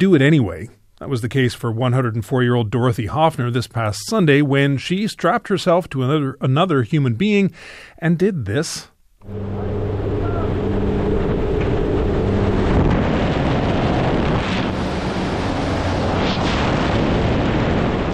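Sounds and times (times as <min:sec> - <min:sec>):
speech: 0:00.0 - 0:10.6
plane engine hum: 0:09.2 - 0:18.1
roaring wind during a tandem skydive: 0:09.2 - 0:18.1.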